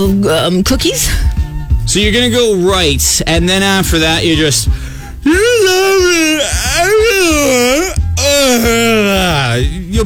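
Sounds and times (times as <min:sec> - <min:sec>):
speech: 0:00.2 - 0:10.0
voice imitating whale calls with long wailing moans: 0:05.2 - 0:09.4.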